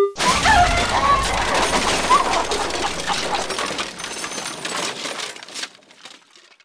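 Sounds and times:
airplane crash: 0.2s - 5.5s.

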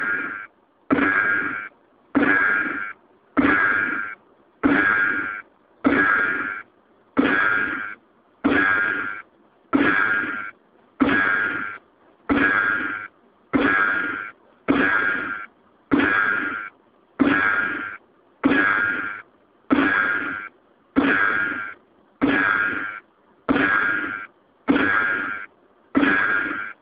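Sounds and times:
gunshots: 0.0s - 6.6s, 7.2s - 26.7s.

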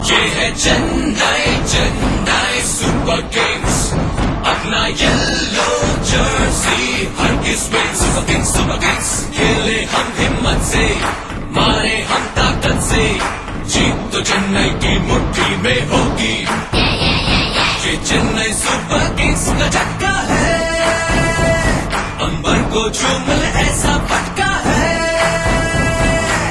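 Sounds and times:
Hindi song: 0.0s - 26.4s.

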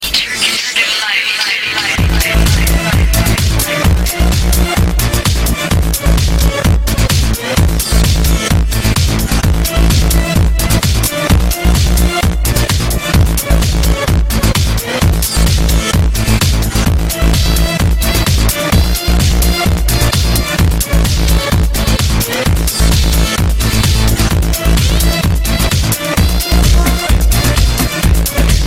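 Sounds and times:
Arab music: 0.2s - 28.6s.

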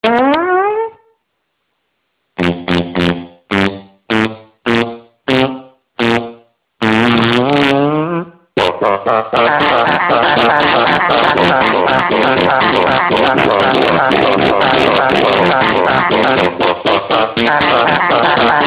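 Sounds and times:
fart song: 0.0s - 1.2s, 2.4s - 18.6s.

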